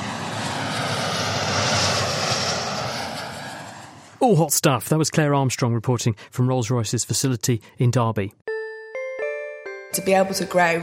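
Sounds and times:
jet engine running: 0.0s - 4.2s
speech: 4.2s - 8.5s, 9.9s - 10.8s.

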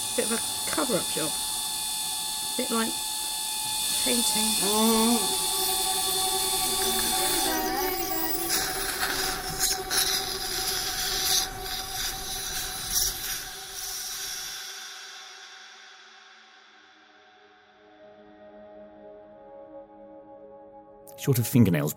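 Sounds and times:
dental drill: 0.0s - 16.5s
speech: 0.2s - 1.5s, 2.6s - 3.1s, 4.0s - 5.8s, 21.2s - 21.9s.

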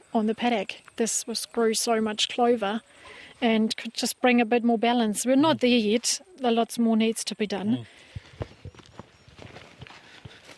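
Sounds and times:
faint outdoor background: 0.0s - 10.5s
speech: 0.1s - 8.1s
footsteps crossing a paddock thick with clover: 8.0s - 10.5s.

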